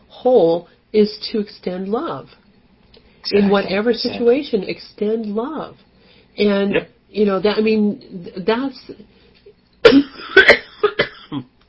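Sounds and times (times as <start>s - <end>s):
speech: 0.2s - 2.4s, 3.2s - 9.2s, 9.9s - 10.6s
person coughing after swallowing saliva the wrong way: 6.7s - 6.9s, 9.8s - 11.5s
throat clearing: 9.9s - 11.6s.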